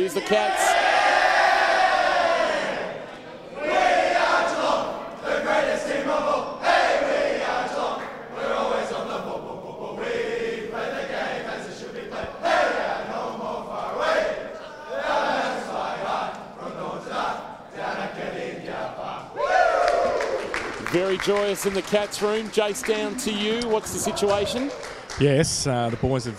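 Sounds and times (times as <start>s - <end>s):
speech: 0.0s - 0.8s, 21.2s - 26.3s
players singing team victory song: 0.6s - 20.1s.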